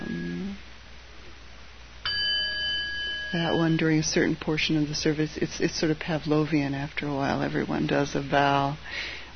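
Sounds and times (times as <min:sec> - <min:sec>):
bell ringing during a weekday morning service: 0:02.0 - 0:03.8
speech: 0:03.3 - 0:09.3.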